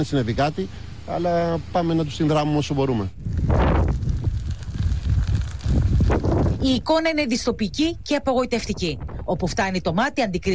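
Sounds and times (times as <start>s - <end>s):
speech: 0.0s - 3.3s, 6.6s - 10.5s
strong wind outdoors: 3.1s - 10.5s.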